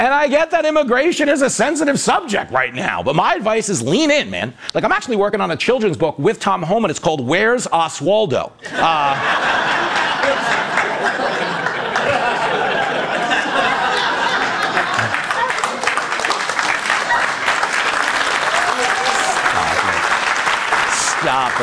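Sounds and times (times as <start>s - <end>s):
speech: 0.0s - 9.7s
audience chuckles and laughter: 8.6s - 18.2s
audience applause: 8.8s - 21.6s.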